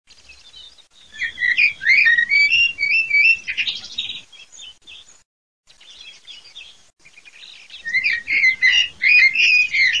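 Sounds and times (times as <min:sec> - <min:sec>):
common blackbird warbling song: 0:01.0 - 0:04.6, 0:05.9 - 0:09.9.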